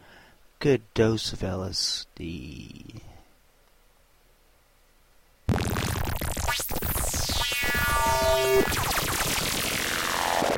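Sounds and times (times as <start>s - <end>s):
speech: 0.6s - 3.0s
buzzing slice-and-dice sound effect: 5.5s - 10.5s
whirring tones: 5.5s - 10.5s.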